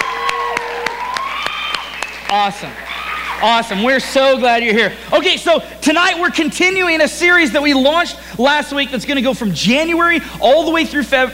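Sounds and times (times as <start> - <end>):
audience applause: 0.0 - 4.7
speech: 2.4 - 11.3.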